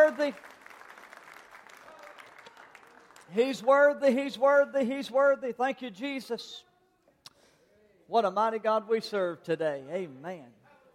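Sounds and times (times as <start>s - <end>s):
hand clap of praise for Jesus: 0.0s - 4.0s
speech: 0.2s - 0.6s, 3.3s - 6.7s, 8.1s - 10.6s.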